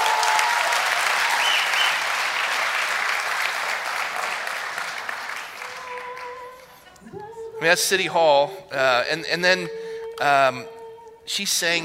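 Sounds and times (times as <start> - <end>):
large crowd applauding at City Hall rally: 0.0 - 7.4
whistle: 1.3 - 2.1
speech: 7.6 - 11.8.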